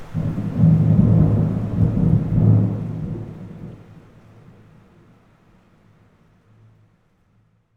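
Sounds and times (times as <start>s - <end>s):
thunder: 0.0s - 4.2s.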